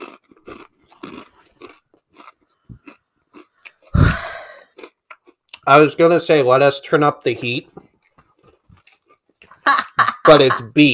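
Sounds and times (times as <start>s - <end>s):
crunching of chips being chewed: 0.0s - 5.7s, 7.8s - 9.6s
speech: 5.7s - 7.8s, 10.3s - 10.9s
laughter: 9.6s - 10.8s.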